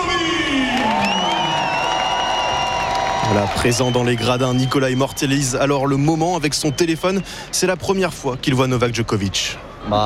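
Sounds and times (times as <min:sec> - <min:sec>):
tennis crowd on centre court cheering and whooping for Novak Djokovic's entrance: 0:00.4 - 0:05.0
speech: 0:03.3 - 0:10.0.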